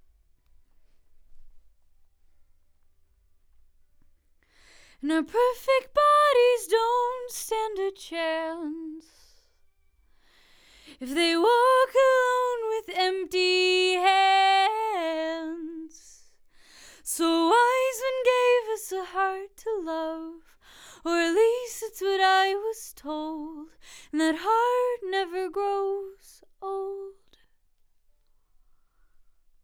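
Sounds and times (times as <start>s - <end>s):
vocals: 4.5s - 9.6s, 10.2s - 27.5s.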